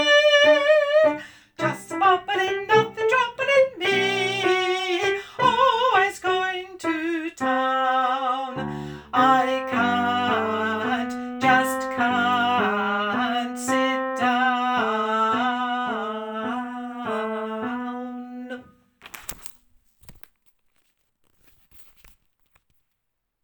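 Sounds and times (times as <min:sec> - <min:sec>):
alto voice singing: 0:00.0 - 0:18.8.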